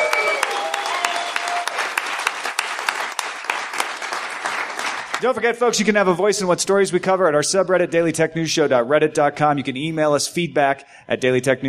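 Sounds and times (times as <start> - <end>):
live audience applauding: 0.0 - 5.3
speech: 5.2 - 11.6.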